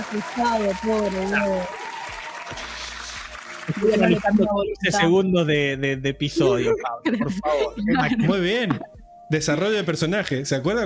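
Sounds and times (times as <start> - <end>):
applause: 0.0 - 4.8
speech: 0.1 - 1.8, 2.5 - 2.8, 3.7 - 10.8
laughter: 6.4 - 9.0.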